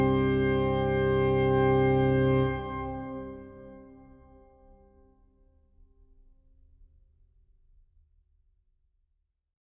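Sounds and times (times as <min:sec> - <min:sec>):
organist playing a praeludium in C: 0:00.0 - 0:04.1.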